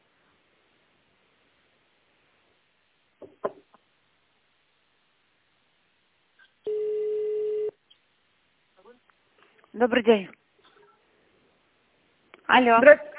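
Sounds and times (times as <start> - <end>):
telephone ringback tone over a phone line: 6.7 - 7.8
speech: 9.8 - 10.4, 12.5 - 13.1.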